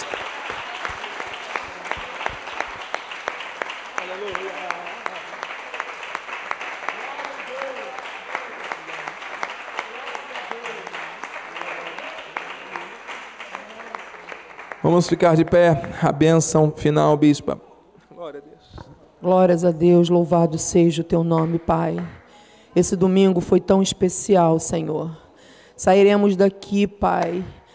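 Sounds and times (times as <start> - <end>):
large crowd clapping: 0.0 - 16.1
speech: 14.9 - 17.7, 19.2 - 22.2, 22.8 - 25.2, 25.8 - 27.6.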